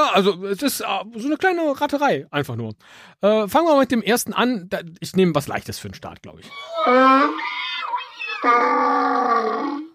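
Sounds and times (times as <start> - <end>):
speech: 0.1 - 7.4, 8.4 - 9.8
donkey braying: 6.5 - 9.9.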